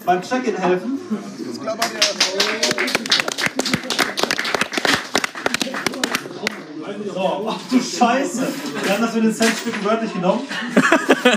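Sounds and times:
speech: 0:00.0 - 0:04.3, 0:07.2 - 0:11.3
audience applause: 0:01.8 - 0:06.6
laughter: 0:10.5 - 0:11.3.

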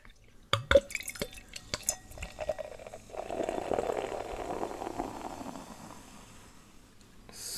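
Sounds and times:
beer pouring into a glass: 0:00.6 - 0:06.1.

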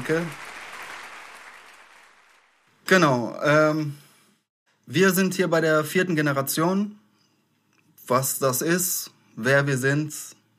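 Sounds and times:
audience applause: 0:00.0 - 0:02.7
speech: 0:00.1 - 0:00.4, 0:02.9 - 0:04.0, 0:04.9 - 0:07.0, 0:08.1 - 0:10.4.

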